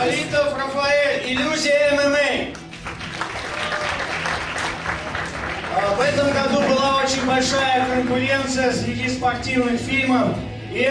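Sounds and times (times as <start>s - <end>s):
speech: 0.0s - 2.6s, 5.8s - 10.8s
audience applause: 2.6s - 8.6s.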